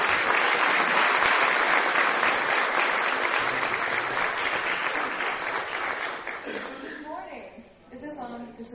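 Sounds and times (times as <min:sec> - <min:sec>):
sustained applause from a large audience welcoming a speaker: 0:00.0 - 0:06.8.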